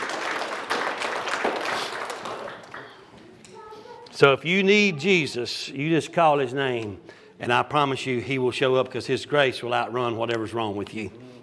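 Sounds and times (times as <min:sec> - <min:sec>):
audience hand clapping: 0:00.0 - 0:03.2
speech: 0:04.2 - 0:11.2.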